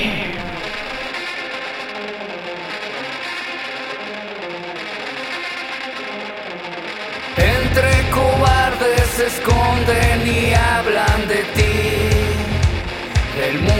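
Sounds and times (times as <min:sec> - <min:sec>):
rock band song intro: 0:00.0 - 0:13.7
speech: 0:13.4 - 0:13.7.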